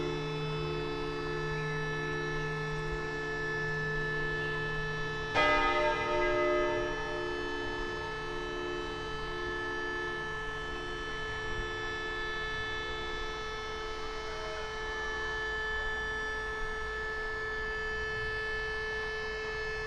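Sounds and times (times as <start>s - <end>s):
siren: 0.0s - 19.8s
bells: 4.5s - 12.6s.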